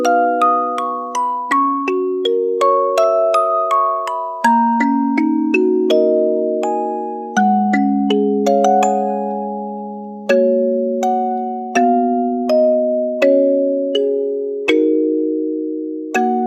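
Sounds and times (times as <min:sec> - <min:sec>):
music box: 0:00.0 - 0:16.4.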